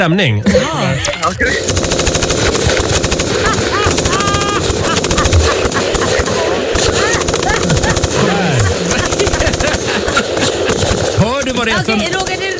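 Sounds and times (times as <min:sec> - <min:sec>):
speech: 0:00.0 - 0:03.8, 0:11.6 - 0:12.4
rumbling engines: 0:00.2 - 0:11.5
machine gun fire: 0:01.6 - 0:12.5
laughter: 0:02.5 - 0:12.1
shouting voices: 0:03.3 - 0:10.9.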